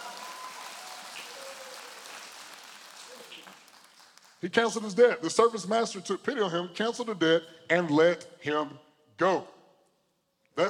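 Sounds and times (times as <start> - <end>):
audience hand clapping: 0.0 - 4.8
speech: 4.4 - 9.6.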